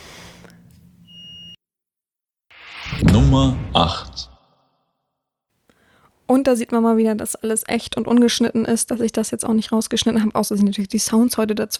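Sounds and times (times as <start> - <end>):
smoke detector beeping: 1.0 - 1.6
speech: 3.2 - 4.3, 6.3 - 11.7.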